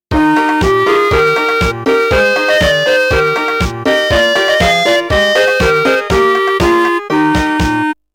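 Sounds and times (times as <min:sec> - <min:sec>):
melody: 0:00.1 - 0:08.0.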